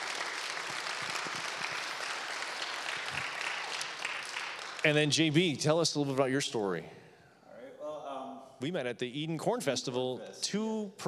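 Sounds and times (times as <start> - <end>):
round of applause: 0.0 - 5.4
speech: 4.8 - 7.0, 8.6 - 11.0.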